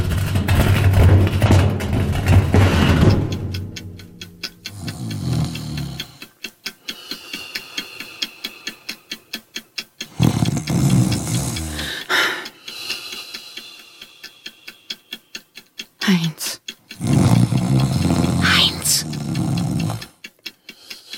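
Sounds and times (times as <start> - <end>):
steady rapid ticking: 0.0 - 21.1
man snoring loudly: 4.7 - 6.2, 10.1 - 12.4, 16.9 - 20.1.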